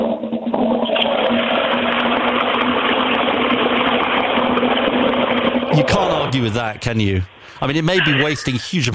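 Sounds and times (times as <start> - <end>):
toilet flushing: 0.0 - 7.2
speech: 5.8 - 8.9.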